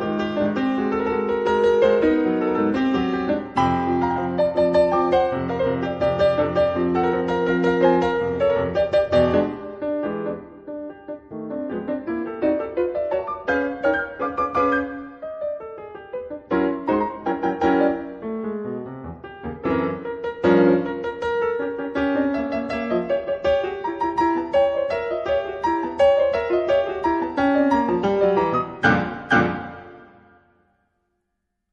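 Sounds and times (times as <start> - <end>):
concert pianist playing allegro molto: 0.0 - 30.7.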